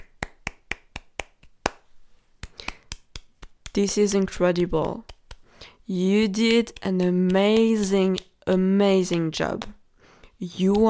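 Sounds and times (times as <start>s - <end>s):
hand clapping: 0.0s - 10.8s
speech: 3.8s - 5.1s, 5.9s - 9.8s, 10.4s - 10.8s.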